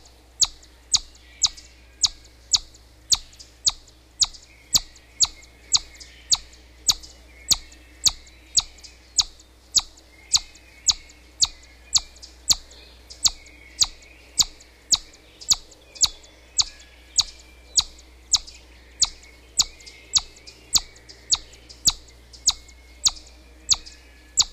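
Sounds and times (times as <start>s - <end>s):
chipmunk squeaking: 0.4s - 24.5s.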